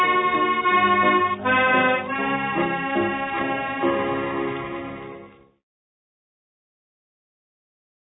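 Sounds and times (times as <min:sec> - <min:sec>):
accordion playing a Scottish quickstep medley: 0:00.0 - 0:05.5.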